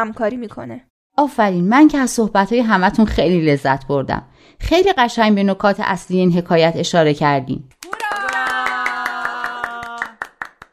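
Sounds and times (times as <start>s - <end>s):
speech: 0.0s - 7.8s
group clapping hands in rhythm: 7.7s - 10.7s.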